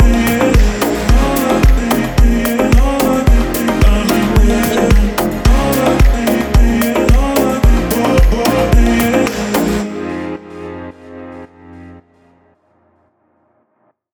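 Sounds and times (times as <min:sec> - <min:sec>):
house club drum kit: 0:00.0 - 0:09.8.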